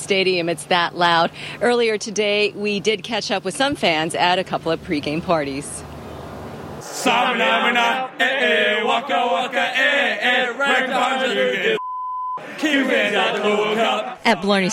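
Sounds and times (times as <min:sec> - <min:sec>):
speech: 0:00.0 - 0:05.9, 0:07.0 - 0:11.8, 0:12.6 - 0:14.7
people singing: 0:06.8 - 0:11.8, 0:12.4 - 0:14.7
censor bleep: 0:11.8 - 0:12.4.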